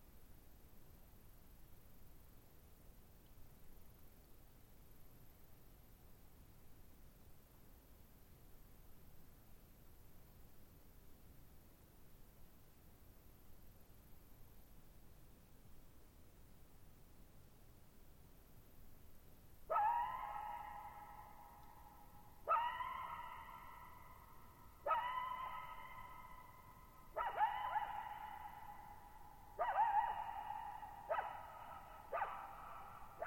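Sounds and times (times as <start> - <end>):
coyote howls and barks: 19.7 - 33.2.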